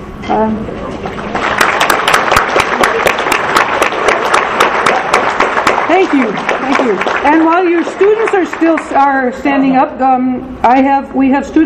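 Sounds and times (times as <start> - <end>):
speech: 0.3 - 1.4, 6.1 - 11.6
audience applause for first-time attendees: 1.0 - 9.1.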